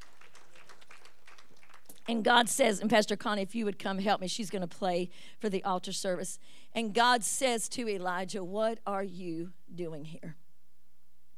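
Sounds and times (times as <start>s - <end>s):
audience hand clapping in praise: 0.0s - 2.2s
speech: 2.1s - 10.4s.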